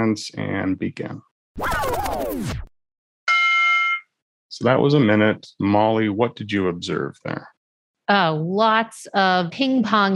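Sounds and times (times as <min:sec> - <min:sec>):
speech: 0:00.0 - 0:02.7, 0:04.5 - 0:07.5, 0:08.1 - 0:10.1
small timer alarm electronic tone: 0:03.3 - 0:04.2.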